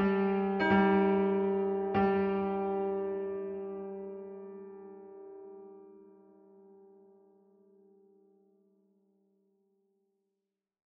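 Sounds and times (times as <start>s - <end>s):
piano piece: 0.0s - 7.1s.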